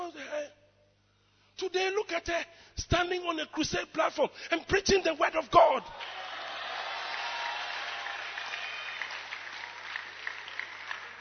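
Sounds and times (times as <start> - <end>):
speech: 1.6 - 6.2
crowd audience clapping and applause: 6.0 - 11.1.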